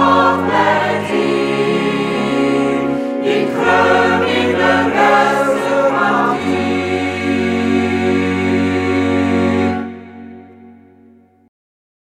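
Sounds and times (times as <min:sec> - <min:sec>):
folk song: 0:00.0 - 0:11.0.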